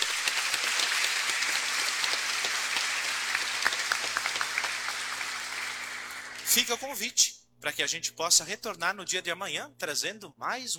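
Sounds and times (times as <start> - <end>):
audience applause: 0.0 - 6.5
speech: 6.6 - 10.7.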